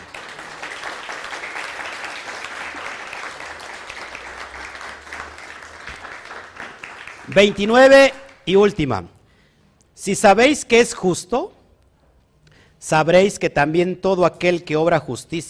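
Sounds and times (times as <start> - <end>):
audience applause: 0.0 - 8.4
speech: 7.3 - 9.2, 10.0 - 11.6, 12.8 - 15.4.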